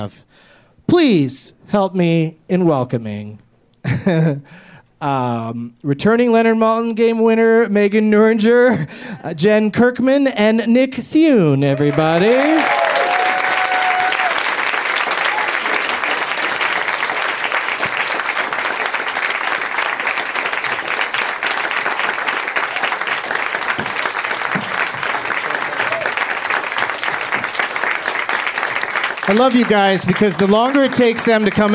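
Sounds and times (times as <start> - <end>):
speech: 0.0 - 12.7, 29.3 - 31.7
sustained loud audience applause: 11.7 - 31.7
whistle or cheer from crowd: 12.4 - 14.4, 15.2 - 15.8, 25.7 - 26.2.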